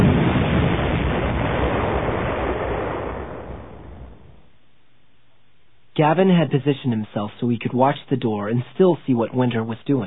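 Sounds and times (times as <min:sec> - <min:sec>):
missiles firing and striking their target: 0:00.0 - 0:04.4
speech: 0:06.0 - 0:10.0.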